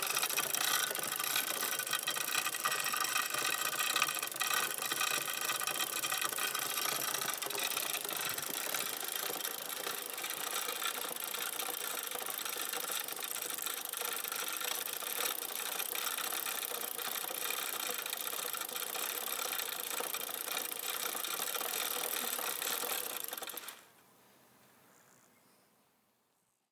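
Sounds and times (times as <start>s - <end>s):
bicycle chain and wheels spinning outdoors: 0.0s - 23.9s.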